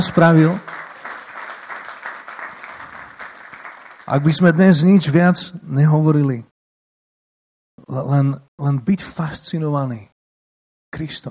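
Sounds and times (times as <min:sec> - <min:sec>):
speech: 0:00.0 - 0:00.7, 0:04.1 - 0:06.5, 0:07.8 - 0:10.1, 0:10.9 - 0:11.2
crowd applauding: 0:00.0 - 0:05.0.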